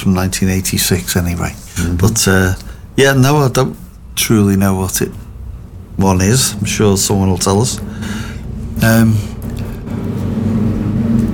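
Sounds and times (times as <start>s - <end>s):
speech: 0.0s - 5.2s, 6.0s - 9.3s
planes flying overhead outside: 4.5s - 11.3s.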